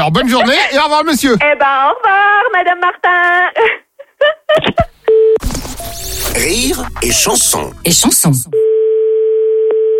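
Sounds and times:
speech: 0.0 - 3.8, 5.5 - 8.6
telephone dialling beep for an outgoing call: 8.6 - 9.9.

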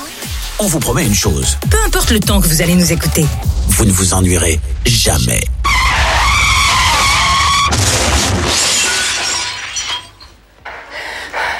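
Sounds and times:
speech: 0.6 - 5.7
tires screeching: 5.6 - 8.9
car crashing: 5.6 - 10.5
glass shattering: 5.7 - 10.5
debris clattering: 5.7 - 10.8.

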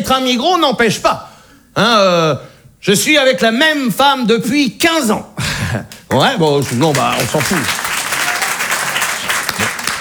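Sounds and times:
speech: 0.1 - 7.8
applause: 5.9 - 10.0.

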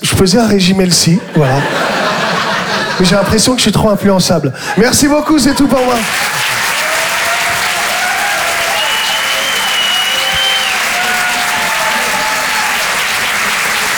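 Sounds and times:
speech: 0.2 - 2.0, 3.0 - 6.6
laughter: 1.2 - 3.6, 4.6 - 13.9
audience clapping for a comedian at a comedy club: 5.6 - 13.9
audience high whistles: 7.0 - 13.9.

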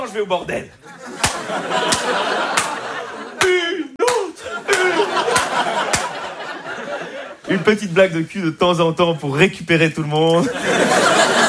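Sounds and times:
speech: 0.0 - 2.7, 7.0 - 11.1
laughter: 0.7 - 8.0, 10.3 - 11.4
hand clapping: 1.2 - 6.3.

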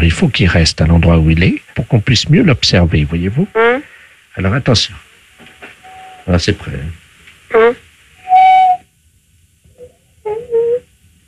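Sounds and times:
speech: 0.0 - 3.8, 4.4 - 5.0, 6.3 - 7.7
parrot whistling: 5.8 - 6.3, 7.5 - 8.8, 9.8 - 10.9.

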